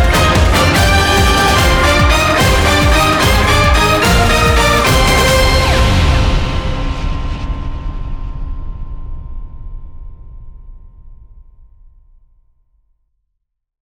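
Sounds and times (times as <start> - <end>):
orchestral hybrid television theme music: 0.0 - 8.2.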